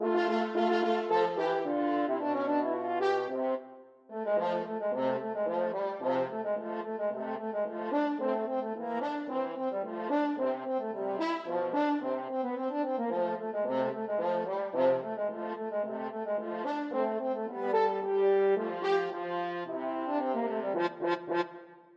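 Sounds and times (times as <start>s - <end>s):
french horn duet: 0.0s - 21.5s.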